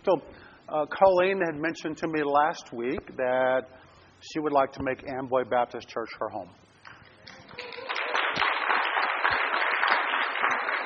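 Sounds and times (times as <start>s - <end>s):
speech: 0.0s - 6.7s
audience clapping: 6.8s - 10.8s.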